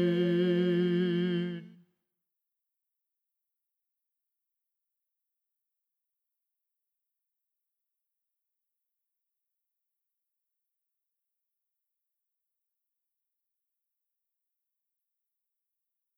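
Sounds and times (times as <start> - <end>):
bass voice of an SATB choir singing: 0.0 - 1.7.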